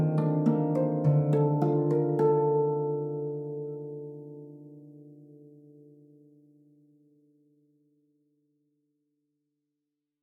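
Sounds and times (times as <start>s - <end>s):
harp: 0.0s - 6.8s.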